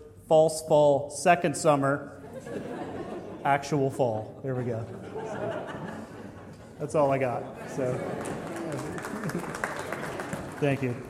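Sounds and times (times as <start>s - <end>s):
speech: 0.3s - 2.7s, 3.4s - 5.6s, 6.8s - 9.5s, 10.6s - 11.0s
laughter: 2.2s - 10.9s
audience clapping: 7.6s - 11.0s.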